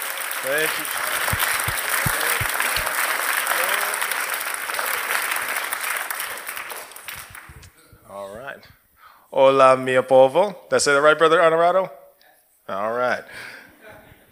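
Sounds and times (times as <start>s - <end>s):
audience clapping in praise: 0.0s - 7.7s
speech: 0.4s - 1.5s, 8.2s - 12.0s, 12.7s - 13.6s.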